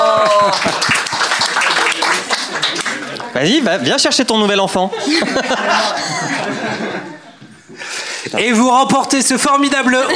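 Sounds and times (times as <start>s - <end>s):
audience applause: 0.0s - 3.4s
speech: 3.4s - 7.1s, 8.3s - 10.1s
laughter: 4.4s - 8.3s, 9.6s - 10.1s.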